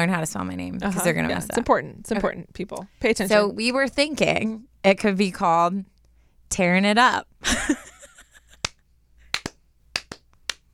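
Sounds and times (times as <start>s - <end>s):
speech: 0.0s - 5.9s, 6.5s - 7.8s
slow clapping by two people: 8.5s - 10.7s.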